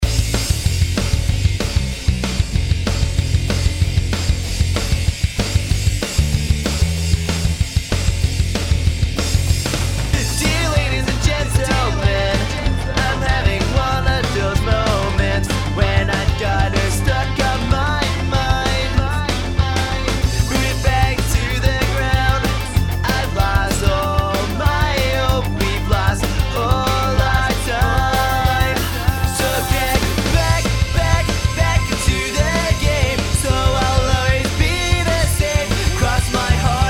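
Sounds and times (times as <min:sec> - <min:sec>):
punk song chorus: 0:00.0 - 0:36.8.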